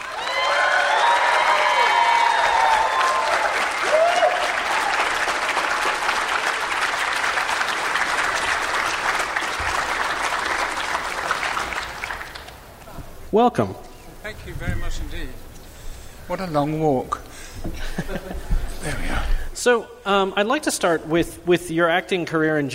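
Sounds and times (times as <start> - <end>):
whoops and cheers: 0.0 - 5.4
audience clapping: 0.0 - 13.0
speech: 13.4 - 15.5, 16.3 - 22.7
laughter: 17.6 - 18.9.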